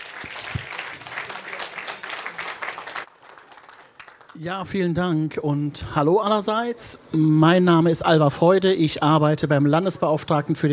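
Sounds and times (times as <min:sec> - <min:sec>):
audience applause: 0:00.0 - 0:04.4
speech: 0:04.4 - 0:10.7.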